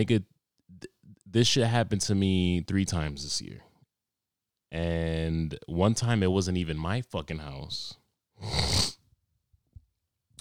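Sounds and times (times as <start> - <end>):
speech: 0.0 - 0.3, 1.3 - 3.7, 4.7 - 9.0
person inhaling phlegm into the back of the throat: 8.4 - 9.0.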